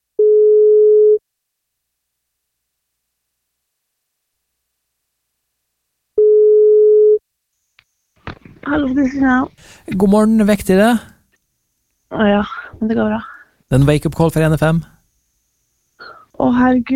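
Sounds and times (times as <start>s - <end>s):
telephone ringback tone on an outgoing call: 0.2s - 1.2s, 6.2s - 7.2s
speech: 8.7s - 11.1s, 12.1s - 14.9s, 16.0s - 16.9s.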